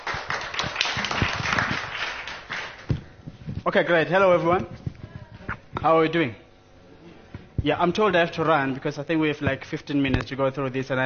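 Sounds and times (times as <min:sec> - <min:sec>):
audience applause: 0:00.0 - 0:02.9
speech: 0:03.7 - 0:04.8, 0:05.8 - 0:06.4, 0:07.6 - 0:11.0.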